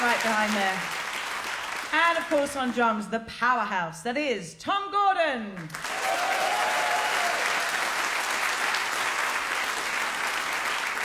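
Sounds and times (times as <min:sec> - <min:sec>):
audience applause: 0:00.0 - 0:01.9, 0:05.7 - 0:11.0
speech: 0:00.2 - 0:01.0, 0:01.9 - 0:06.0.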